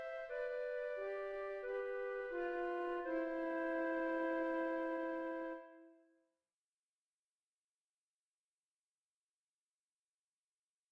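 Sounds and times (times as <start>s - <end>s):
beginning flute duet in C major: 0.0s - 6.0s.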